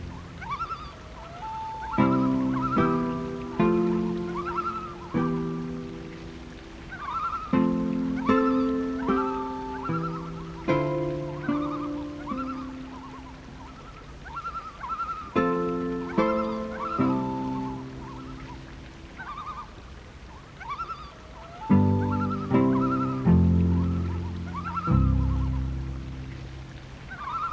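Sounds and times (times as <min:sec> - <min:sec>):
loon tremolo: 0:01.8 - 0:14.0, 0:14.9 - 0:18.8, 0:21.7 - 0:26.1.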